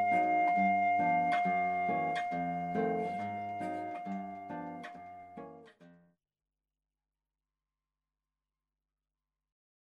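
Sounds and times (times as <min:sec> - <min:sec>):
blues trio playing: 0:00.0 - 0:05.6.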